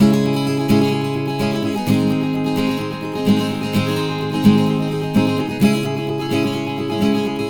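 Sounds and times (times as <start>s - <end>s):
acoustic Latin guitar in C sharp minor: 0.0s - 7.4s.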